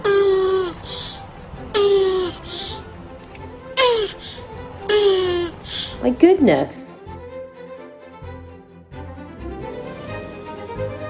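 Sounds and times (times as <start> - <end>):
happy tortoise squeaking: 0.0 - 2.9, 3.8 - 6.1
speech: 6.2 - 6.9.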